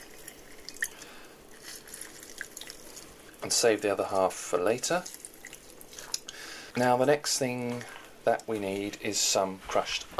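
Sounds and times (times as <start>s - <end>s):
lime half squeezed over a glass: 0.0s - 3.4s, 4.9s - 6.4s
lime juice dripping into a glass: 0.0s - 9.1s
soft steady hiss: 0.0s - 10.1s
speech: 3.4s - 5.2s, 6.8s - 10.1s.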